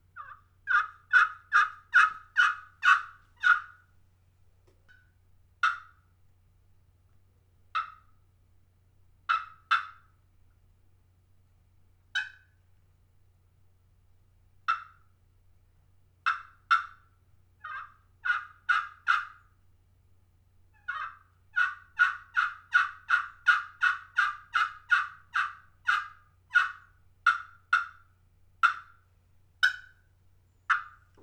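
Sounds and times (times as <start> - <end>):
copper turkey call in a composite pot with slate bottom yelping: 0.2 - 3.7, 16.2 - 17.0, 17.6 - 19.4, 20.7 - 28.0, 28.6 - 29.0, 29.6 - 30.0, 30.7 - 31.1.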